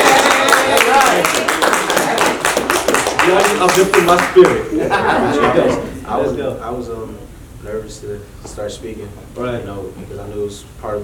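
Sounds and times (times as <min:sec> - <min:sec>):
audience applause: 0:00.0 - 0:04.7
speech: 0:03.3 - 0:11.0
laughter: 0:04.6 - 0:06.0.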